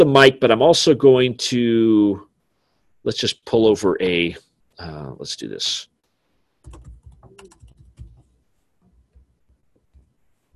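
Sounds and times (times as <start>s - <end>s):
speech: 0.0s - 2.3s, 3.0s - 5.9s
computer keyboard typing a note in an editor: 6.6s - 10.5s.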